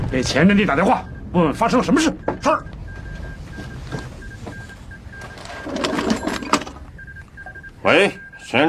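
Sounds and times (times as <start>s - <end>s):
speech: 0.1s - 2.7s, 7.9s - 8.6s
old field telephone ringing: 3.5s - 8.5s.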